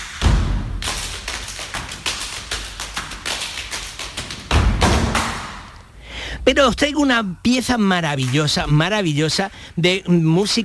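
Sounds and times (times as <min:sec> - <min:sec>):
choir performing body percussion: 0:00.0 - 0:05.9
speech: 0:06.5 - 0:10.6.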